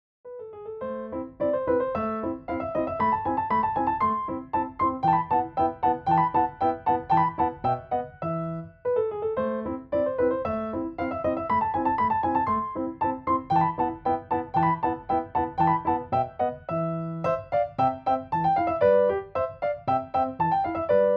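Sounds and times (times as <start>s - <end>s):
piano piece: 0.2s - 21.1s.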